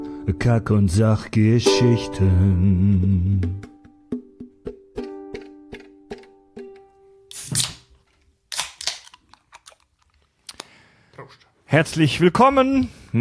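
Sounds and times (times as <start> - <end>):
speech: 0.5 - 3.7, 11.7 - 13.1
beer can being opened: 7.3 - 10.2.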